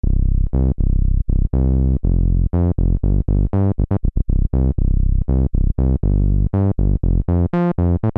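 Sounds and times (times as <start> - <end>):
Novation Nova desktop LPF12 low-pass filter demo: 0.0 - 8.0.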